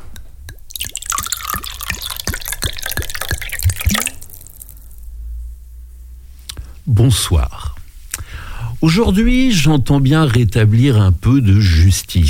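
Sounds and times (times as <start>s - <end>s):
radio jingle of liquid dripping plops and gurgles: 0.0s - 5.0s
speech: 6.9s - 7.8s, 8.8s - 12.2s.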